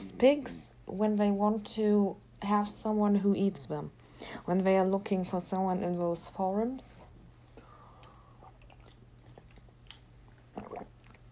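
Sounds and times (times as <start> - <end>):
speech: 0.2 - 7.1
soft swallowing and gulping while drinking water: 7.6 - 11.3
faint wet mouth clicks of someone drinking water: 8.0 - 11.3.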